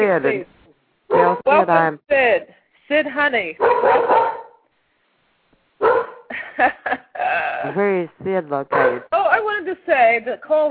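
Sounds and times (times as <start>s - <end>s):
speech: 0.0s - 4.4s, 6.6s - 10.7s
dog barking at the door: 1.1s - 1.5s, 3.6s - 4.6s, 5.8s - 6.3s, 8.7s - 9.1s.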